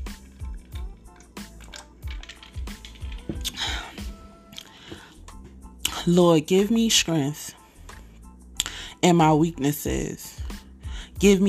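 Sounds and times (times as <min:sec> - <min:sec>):
person sipping a drink: 0:02.9 - 0:05.2
speech: 0:06.0 - 0:07.6, 0:09.0 - 0:10.4, 0:11.2 - 0:11.4.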